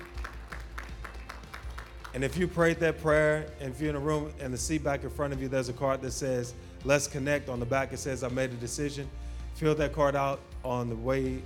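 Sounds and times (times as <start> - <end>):
crowd clapping hands in praise: 0.0 - 2.9
speech: 2.1 - 11.4.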